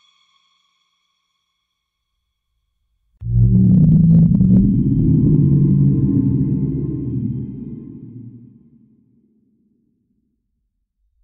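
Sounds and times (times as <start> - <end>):
scary horror sound effects: 3.2 - 9.1.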